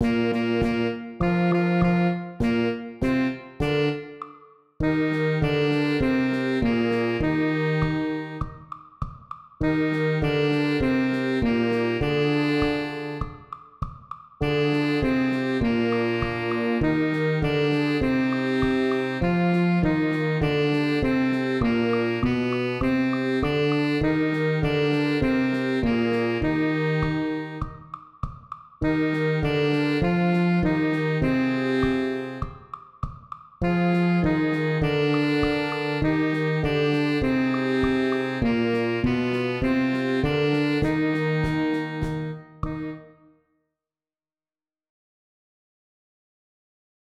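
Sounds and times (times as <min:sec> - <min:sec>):
alto saxophone in a bar: 0:00.0 - 0:08.9, 0:09.6 - 0:13.6, 0:14.4 - 0:28.1, 0:28.8 - 0:32.8, 0:33.6 - 0:43.3.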